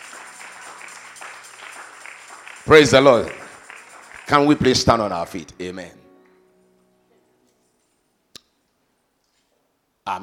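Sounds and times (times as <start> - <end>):
audience clapping hands: 0.0 - 5.4
speech: 2.6 - 3.4, 4.3 - 6.0, 10.1 - 10.2.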